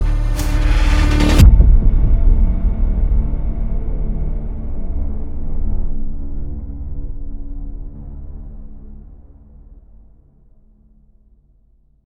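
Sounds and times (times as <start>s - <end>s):
intro whoosh: 0.0s - 7.1s.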